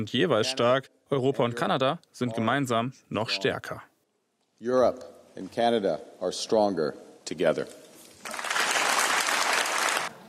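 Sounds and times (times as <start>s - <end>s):
speech: 0.0s - 3.9s, 4.6s - 8.4s
applause for Mark Carney in the European Parliament in Strasbourg: 8.2s - 10.2s.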